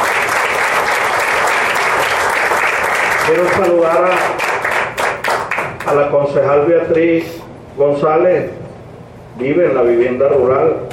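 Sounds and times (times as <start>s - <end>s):
audience applause: 0.0s - 5.9s
speech: 3.3s - 4.4s, 5.8s - 8.6s, 9.4s - 10.9s.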